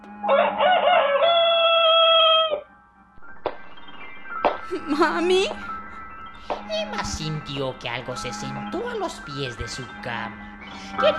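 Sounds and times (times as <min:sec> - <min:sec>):
rooster crowing: 0:00.3 - 0:02.7
speech: 0:04.7 - 0:05.7, 0:06.7 - 0:11.1.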